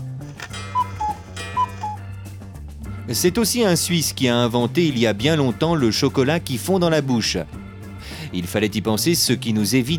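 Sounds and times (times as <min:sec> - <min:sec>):
soft low instrumental music: 0:00.0 - 0:09.9
cuckoo clock calling: 0:00.4 - 0:02.1
speech: 0:03.1 - 0:07.6, 0:08.3 - 0:09.9.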